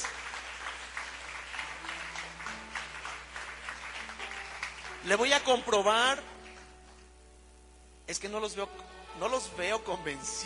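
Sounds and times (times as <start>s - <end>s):
audience applause: 0.0s - 5.4s
speech: 5.0s - 6.3s, 8.1s - 10.4s.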